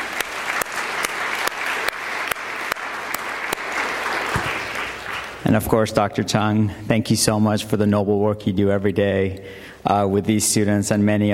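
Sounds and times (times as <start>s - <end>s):
audience applause: 0.0s - 5.5s
speech: 5.5s - 11.3s.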